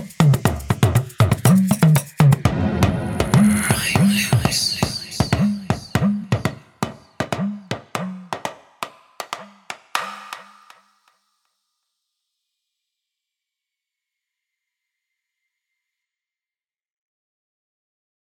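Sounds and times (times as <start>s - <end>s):
Nigerian percussion: 0.0s - 11.4s.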